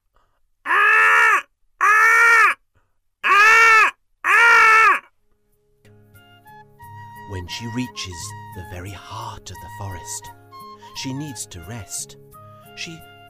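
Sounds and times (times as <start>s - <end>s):
voices imitating a barking deer: 0.7s - 2.6s, 3.3s - 5.1s
speech: 7.5s - 10.4s, 10.9s - 13.1s.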